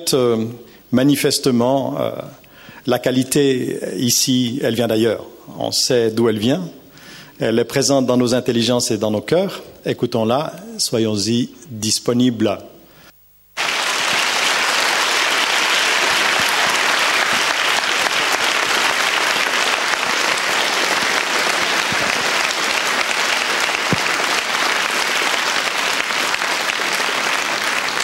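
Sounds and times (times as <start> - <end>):
speech: 0.0 - 6.8, 7.4 - 12.7
sustained applause from a large audience in a full hall: 13.6 - 28.0.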